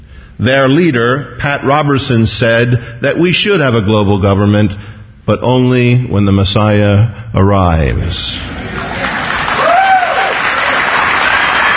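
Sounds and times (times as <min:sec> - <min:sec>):
speech: 0:00.4 - 0:08.8
audience applause: 0:08.6 - 0:11.7.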